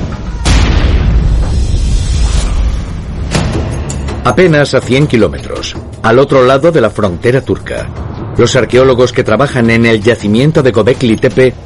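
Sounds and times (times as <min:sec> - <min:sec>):
bomb detonating at an archaeological site: 0:00.0 - 0:03.8
speech: 0:04.2 - 0:11.6.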